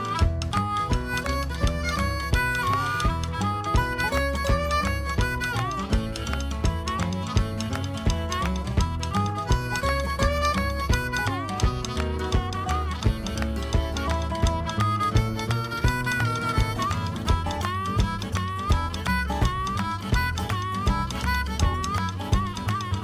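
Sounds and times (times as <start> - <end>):
blues video game music: 0.0 - 23.0.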